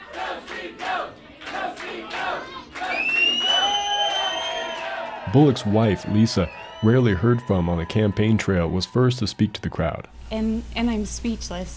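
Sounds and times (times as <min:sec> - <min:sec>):
supporters cheering and shouting at election rally: 0:00.0 - 0:10.0
high whoops and whistles: 0:02.8 - 0:05.3, 0:06.1 - 0:07.4
speech: 0:05.3 - 0:11.7.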